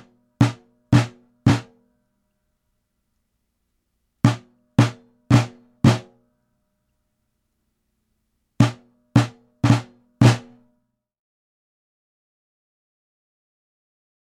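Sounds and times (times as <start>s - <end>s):
pataflafla drum rudiment: 0.0s - 1.8s, 4.3s - 6.1s, 8.6s - 10.6s.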